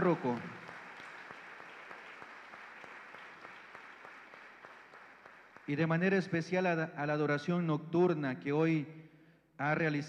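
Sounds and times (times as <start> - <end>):
speech: 0.0 - 0.6, 5.7 - 9.0, 9.6 - 10.0
audience applauding: 0.0 - 5.8.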